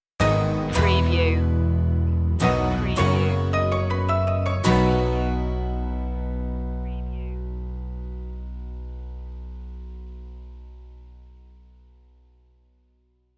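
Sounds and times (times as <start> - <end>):
music stinger: 0.2 - 12.4.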